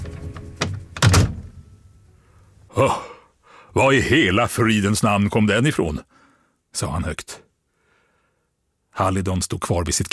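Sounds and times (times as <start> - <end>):
door slamming shut: 0.0 - 1.7
speech: 2.8 - 3.1, 3.7 - 6.2, 6.8 - 7.4, 9.0 - 10.1.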